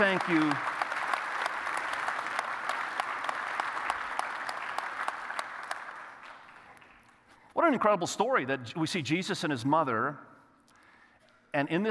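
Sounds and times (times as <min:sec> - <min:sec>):
speech: 0:00.0 - 0:00.7, 0:07.7 - 0:10.3, 0:11.6 - 0:11.8
audience applause: 0:00.0 - 0:07.0.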